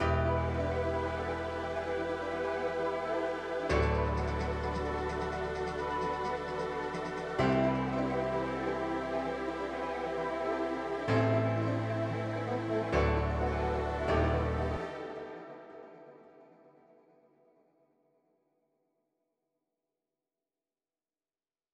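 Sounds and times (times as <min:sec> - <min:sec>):
ethereal ambience: 0:00.0 - 0:17.0.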